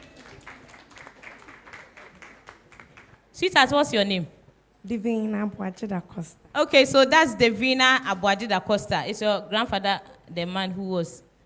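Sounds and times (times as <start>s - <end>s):
audience clapping: 0.0s - 3.3s
speech: 3.4s - 11.4s.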